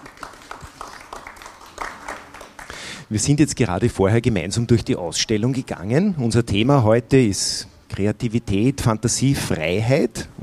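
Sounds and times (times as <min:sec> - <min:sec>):
audience applause: 0:00.0 - 0:03.0
speech: 0:03.1 - 0:10.4.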